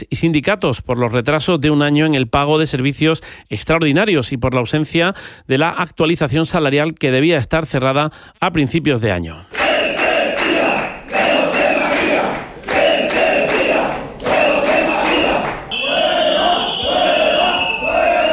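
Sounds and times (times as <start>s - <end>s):
speech: 0.0s - 9.6s
protesters shouting in council chamber: 9.5s - 18.3s
steady roar of crowd voices: 9.6s - 18.3s.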